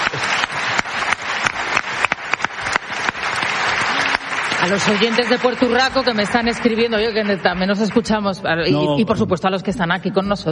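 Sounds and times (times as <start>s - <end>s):
audience applause: 0.0s - 8.6s
speech: 4.6s - 10.5s.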